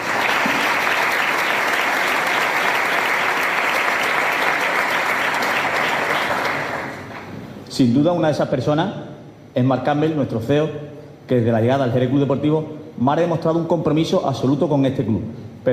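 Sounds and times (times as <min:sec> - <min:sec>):
audience applause: 0:00.0 - 0:07.3
speech: 0:07.8 - 0:15.7.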